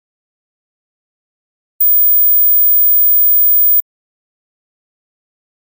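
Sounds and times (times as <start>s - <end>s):
tones on the right channel: 1.8s - 3.8s.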